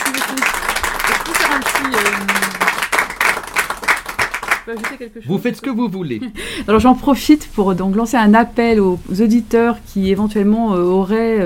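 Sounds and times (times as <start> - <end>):
audience applause: 0.0 - 5.0
speech: 4.7 - 11.4.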